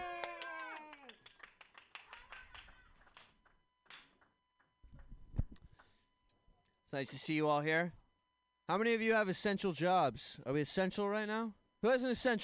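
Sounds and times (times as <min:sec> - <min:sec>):
audience clapping for a comedian at an open mic comedy show: 0:00.0 - 0:05.1
speech: 0:06.9 - 0:08.0, 0:08.7 - 0:12.4.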